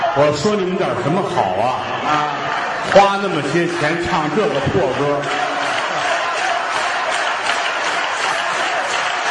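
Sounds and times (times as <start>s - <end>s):
speech: 0.2s - 5.5s
live performance audience applause: 2.1s - 9.2s.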